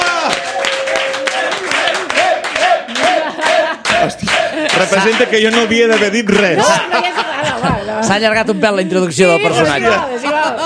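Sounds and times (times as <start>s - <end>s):
audience applause: 0.0s - 6.8s
laughter: 2.8s - 10.6s
speech: 4.8s - 10.6s.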